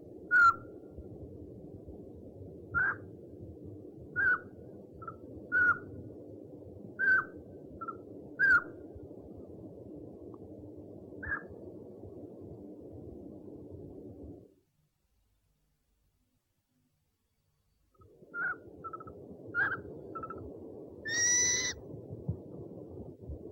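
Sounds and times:
owl hooting: 2.8s - 3.0s, 4.2s - 5.9s, 7.0s - 8.7s, 11.2s - 11.5s, 18.3s - 21.8s.

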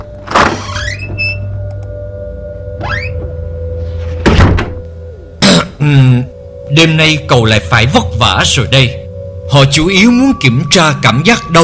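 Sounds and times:
low steady hum: 0.0s - 11.6s
office door pulled shut with a heavy thunk: 4.2s - 4.8s
speech: 5.8s - 11.6s.

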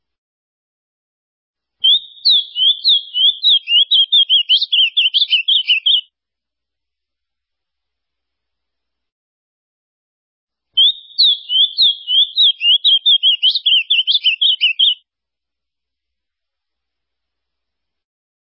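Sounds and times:
ultramarine grosbeak song: 1.8s - 6.1s, 10.8s - 15.0s.

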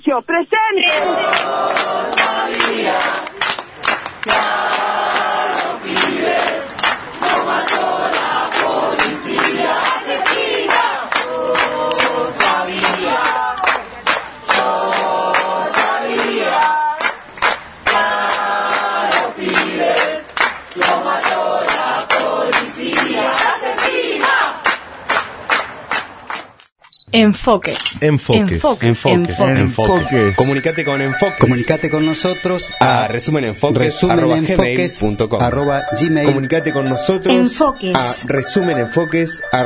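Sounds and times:
speech: 0.1s - 3.2s, 27.2s - 39.6s
large protest crowd shouting a rhythmic chant: 0.8s - 24.8s.

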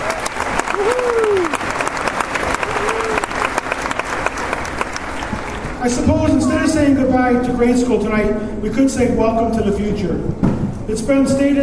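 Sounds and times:
audience applauding teachers at a grade-school graduation: 0.0s - 6.0s
speech: 5.8s - 11.6s.

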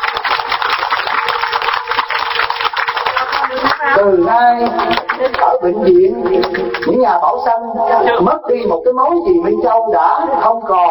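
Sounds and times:
round of applause: 0.0s - 4.0s, 4.7s - 5.4s
speech: 3.6s - 10.9s.

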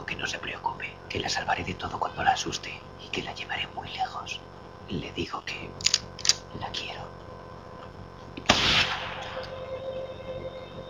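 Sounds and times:
speech: 0.2s - 7.3s
silenced gunshot: 8.4s - 9.5s.

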